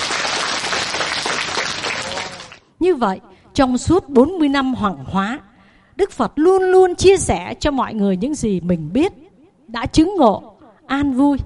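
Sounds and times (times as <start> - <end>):
audience applause: 0.0 - 2.6
speech: 2.8 - 11.4.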